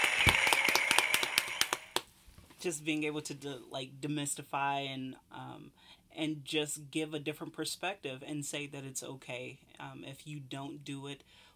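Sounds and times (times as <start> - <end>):
hand claps: 0.0 - 2.1
speech: 2.6 - 11.5.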